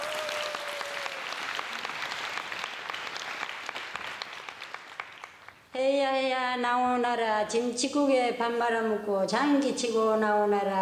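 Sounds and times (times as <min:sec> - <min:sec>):
audience applause: 0:00.0 - 0:05.6
speech: 0:05.8 - 0:10.8.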